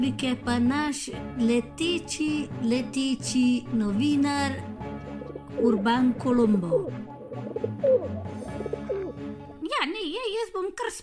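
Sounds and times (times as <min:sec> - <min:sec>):
speech: 0:00.0 - 0:04.7, 0:05.6 - 0:08.8, 0:10.1 - 0:11.0
pigeons cooing: 0:04.9 - 0:09.4.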